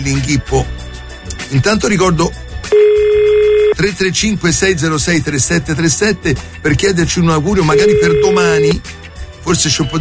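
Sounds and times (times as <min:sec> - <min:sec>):
speech: 0:00.0 - 0:00.8, 0:01.5 - 0:09.9
telephone dial tone: 0:02.8 - 0:03.8, 0:07.8 - 0:08.8.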